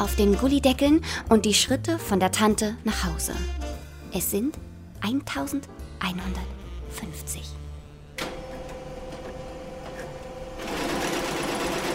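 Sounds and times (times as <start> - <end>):
speech: 0.0 - 7.6
sewing machine stitching clothes in an alterations tailoring shop in Buenos Aires: 8.2 - 11.9.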